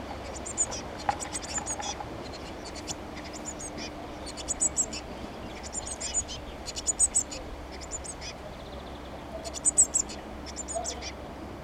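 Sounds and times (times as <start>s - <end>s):
Eurasian blue tit calling: 0.0s - 11.2s.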